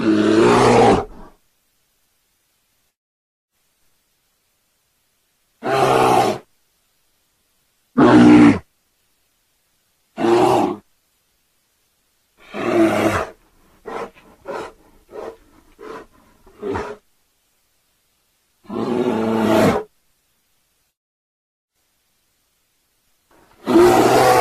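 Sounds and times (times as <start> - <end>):
bear snarling and giving deep rumbling roars: 0.0 - 1.3, 5.6 - 6.5, 8.0 - 8.7, 10.2 - 10.8, 12.4 - 17.0, 18.6 - 19.9, 23.6 - 24.4.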